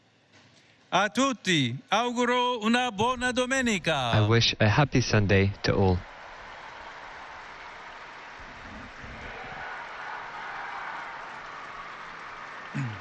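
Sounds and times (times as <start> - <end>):
speech: 0.9 - 6.1
applause from pilgrims gathered in St. Peter's Square: 4.2 - 13.0.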